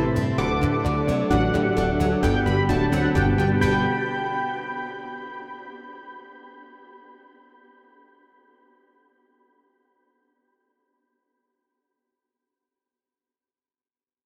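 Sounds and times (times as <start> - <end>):
backing music: 0.0 - 5.1.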